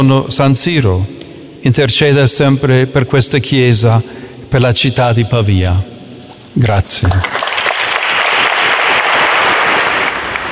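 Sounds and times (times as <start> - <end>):
speech: 0.0 - 5.9, 6.6 - 7.5
large audience applauding after papal homily: 7.0 - 10.4.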